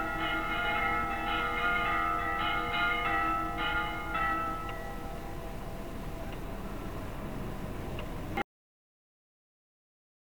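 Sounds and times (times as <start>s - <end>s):
bells tolling for the souls: 0.0s - 7.8s.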